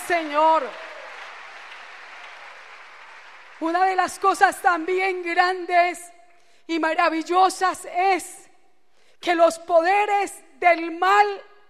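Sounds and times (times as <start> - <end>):
congregation applauding during a church service: 0.0 - 4.6
speech: 0.1 - 0.8, 3.6 - 6.1, 6.7 - 8.4, 9.2 - 11.5.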